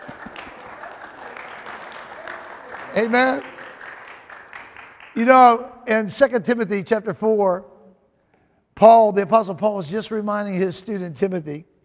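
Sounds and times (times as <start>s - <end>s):
church congregation clapping hands in praise: 0.0s - 5.7s
speech: 2.9s - 3.5s, 5.2s - 7.7s, 8.8s - 11.7s.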